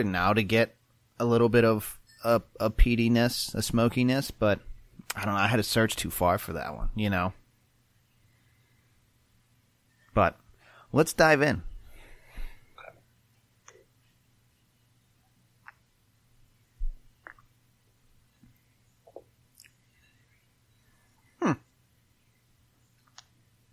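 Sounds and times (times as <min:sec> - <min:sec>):
speech: 0:00.0 - 0:07.4, 0:10.2 - 0:11.7, 0:21.4 - 0:21.6
low steady hum: 0:00.0 - 0:23.7
sipping whiskey with lip smacks: 0:15.6 - 0:15.9, 0:16.8 - 0:17.5, 0:19.0 - 0:19.8.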